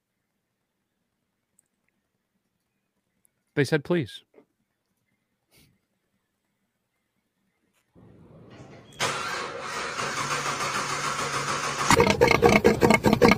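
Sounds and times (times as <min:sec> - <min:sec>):
speech: 0:03.6 - 0:04.3
car engine starting and revving: 0:08.0 - 0:13.2.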